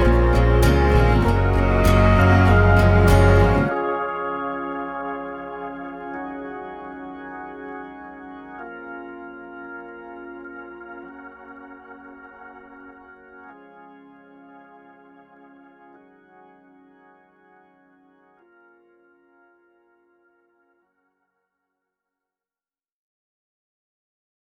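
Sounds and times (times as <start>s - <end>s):
acoustic music: 0.0s - 13.3s.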